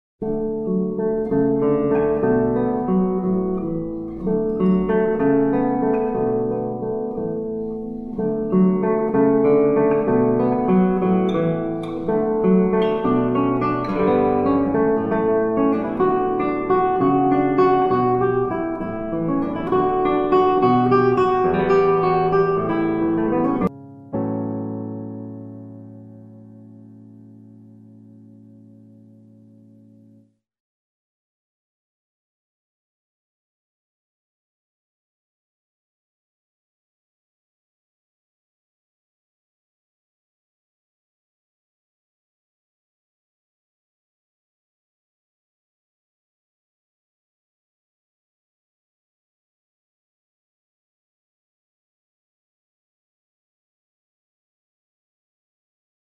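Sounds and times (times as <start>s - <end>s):
barcarolle in D major on classical guitar: 0.2s - 30.4s.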